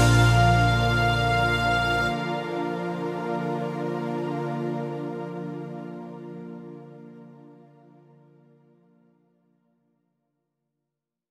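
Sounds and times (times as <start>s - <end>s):
instrumental karaoke backing track: 0.0s - 6.4s.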